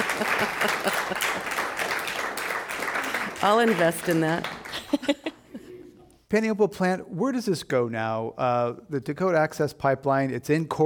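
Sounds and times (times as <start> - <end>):
laughter: 0.0 - 2.2, 4.6 - 6.0
audience applauding: 0.0 - 5.2
speech: 0.4 - 1.6, 3.4 - 5.4, 6.3 - 10.8.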